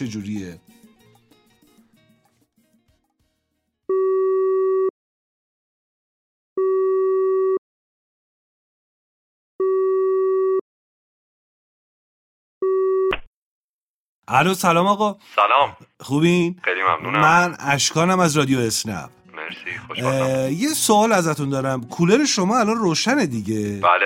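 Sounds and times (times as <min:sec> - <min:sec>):
speech: 0:00.0 - 0:00.8, 0:14.3 - 0:24.0
telephone ringback tone: 0:03.9 - 0:04.9, 0:06.6 - 0:07.6, 0:09.6 - 0:10.6, 0:12.6 - 0:13.1
laughter: 0:19.6 - 0:20.9.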